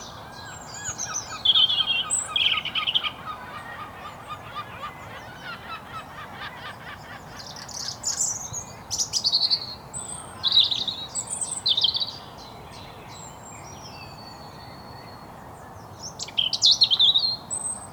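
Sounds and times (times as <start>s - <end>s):
European robin Erithacus rubecula singing: 0.0s - 14.9s.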